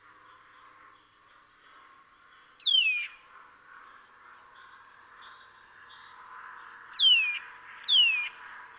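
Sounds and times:
Eurasian nuthatch calls: 2.6 - 3.2, 4.2 - 8.7.

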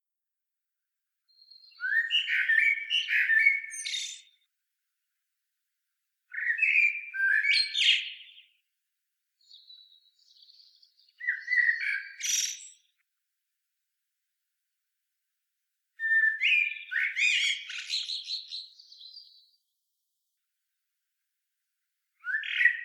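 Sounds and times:
Common blackbird singing: 1.3 - 4.4, 6.3 - 8.6, 9.4 - 12.9, 16.0 - 19.6, 22.2 - 22.8.

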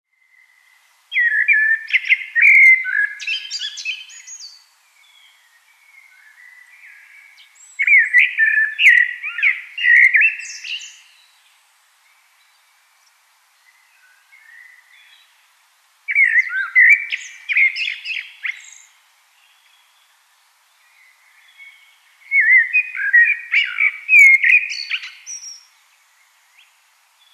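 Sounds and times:
common blackbird singing: 0.2 - 11.2, 16.1 - 20.1, 20.8 - 25.7.

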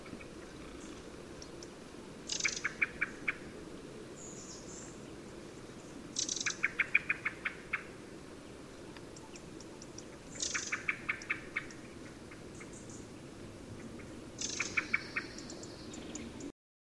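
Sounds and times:
common blackbird rattling calls: 2.3 - 3.4, 6.1 - 7.9, 9.2 - 13.0, 14.0 - 16.2.

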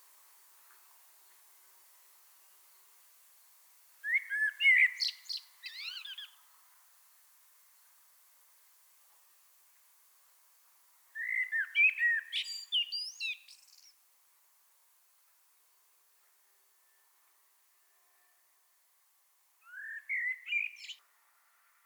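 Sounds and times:
common blackbird whistled song: 4.0 - 6.4, 11.2 - 14.0, 19.6 - 21.0.

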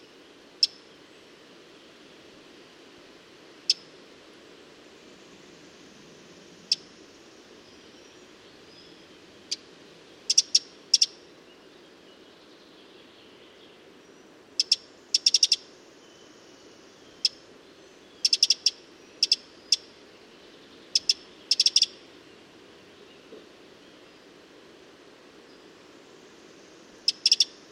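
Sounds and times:
faint even hiss: 0.0 - 27.6
Eurasian wren clicking calls: 14.6 - 15.6, 18.2 - 19.9, 20.9 - 22.0, 27.1 - 27.6.

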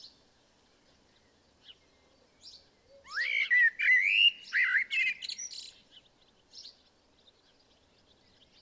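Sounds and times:
common blackbird song: 0.0 - 8.6.

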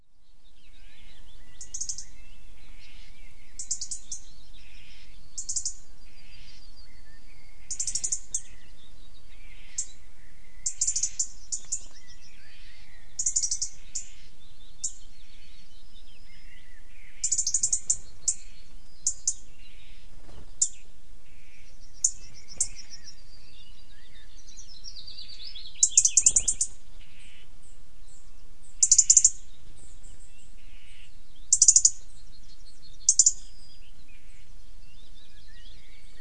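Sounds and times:
European robin ticking calls: 0.8 - 10.0, 10.6 - 36.2.

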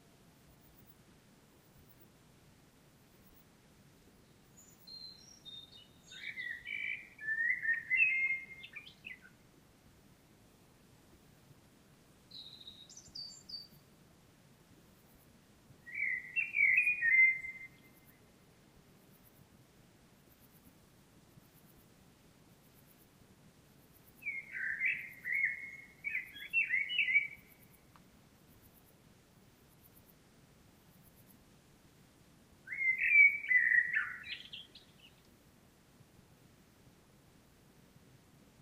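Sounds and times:
common blackbird song: 4.2 - 9.4, 12.3 - 13.9, 15.8 - 18.3, 24.0 - 28.0, 32.6 - 35.3.

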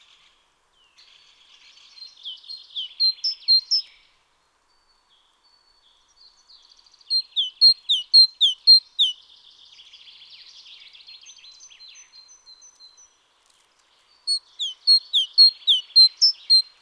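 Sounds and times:
Great tit song, Parus major: 2.0 - 4.0, 7.1 - 9.2, 14.2 - 16.8.

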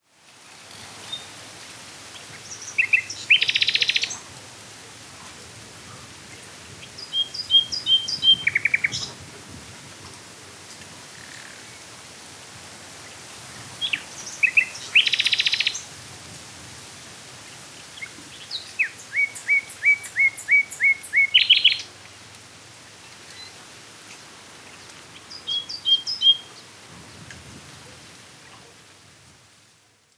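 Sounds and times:
common nightingale singing: 2.4 - 4.2, 6.9 - 9.2, 13.8 - 15.9, 18.0 - 22.0, 25.2 - 26.6.

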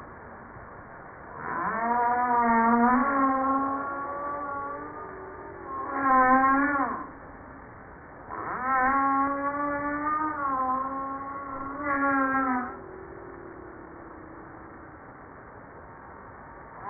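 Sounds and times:
Humpback whale broad gravelly grunting units: 1.4 - 7.1, 8.3 - 14.9.

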